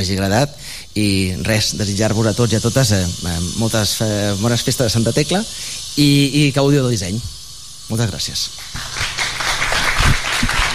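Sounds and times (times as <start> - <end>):
speech: 0.0 - 9.0
audience applause: 8.7 - 10.7.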